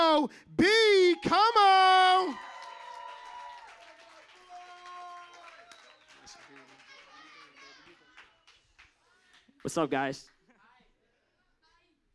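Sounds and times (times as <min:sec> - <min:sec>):
speech: 0:00.2 - 0:02.5, 0:09.6 - 0:10.4
lively crowd clapping and cheering: 0:01.0 - 0:10.1.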